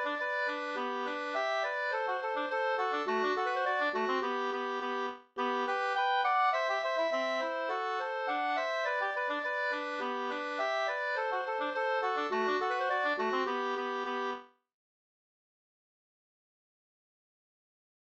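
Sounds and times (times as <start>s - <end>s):
polka music: 0.0s - 14.4s.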